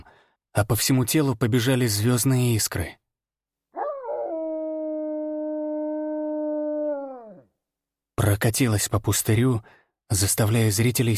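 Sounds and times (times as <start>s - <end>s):
speech: 0.6s - 3.0s, 8.4s - 11.1s
wolf howling: 3.8s - 7.5s.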